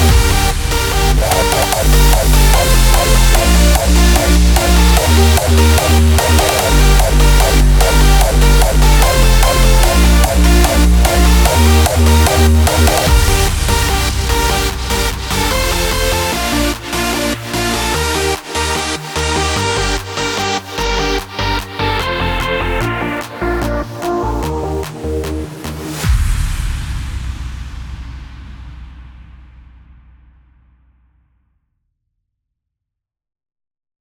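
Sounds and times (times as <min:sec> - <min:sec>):
hardstyle synth lead: 0:00.0 - 0:26.2.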